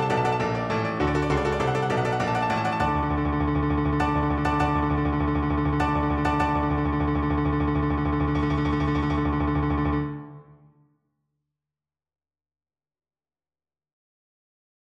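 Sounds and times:
piano piece: 0.0s - 10.7s.

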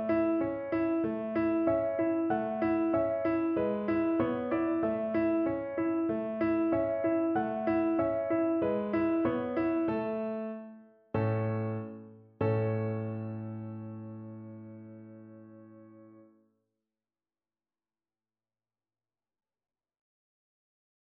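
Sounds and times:
electric piano: 0.0s - 16.3s.

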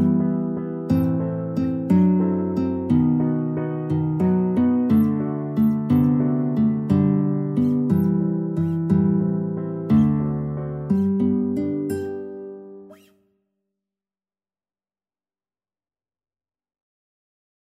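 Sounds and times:
guitar waltz: 0.0s - 13.2s.

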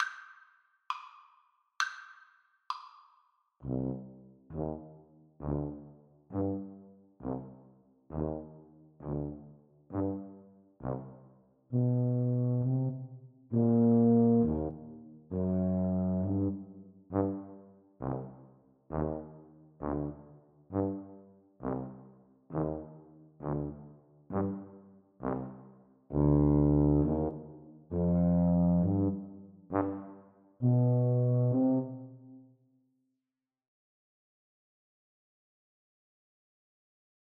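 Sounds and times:
tuba duet: 3.6s - 32.4s.

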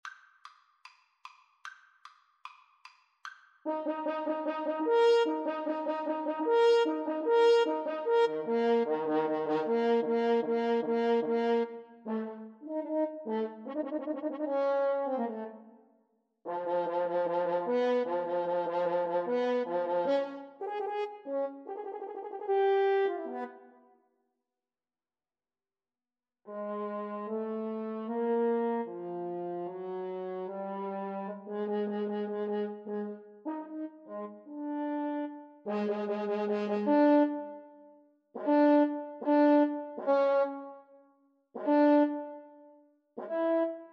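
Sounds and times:
french horn duet: 3.7s - 15.6s, 16.5s - 23.5s, 26.5s - 37.6s, 38.4s - 40.7s, 41.6s - 42.4s.

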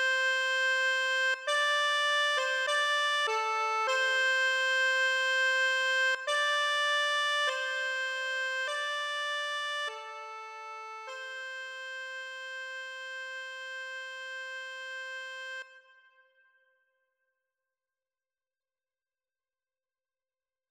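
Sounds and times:
accordion: 0.0s - 15.7s.

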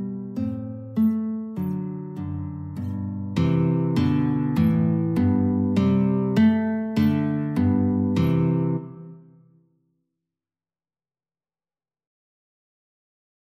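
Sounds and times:
three guitars playing a classical piece: 0.0s - 9.1s.

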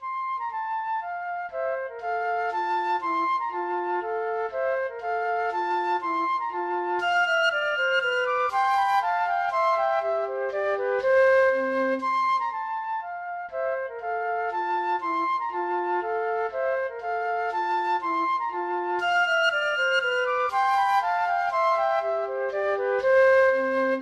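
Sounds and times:
flute duet playing a minuet: 0.0s - 23.9s.

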